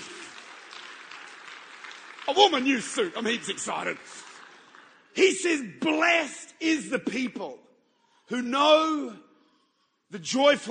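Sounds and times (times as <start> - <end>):
audience clapping: 0.0 - 5.9
speech: 2.3 - 4.3, 5.2 - 7.7, 8.3 - 9.2, 10.1 - 10.6.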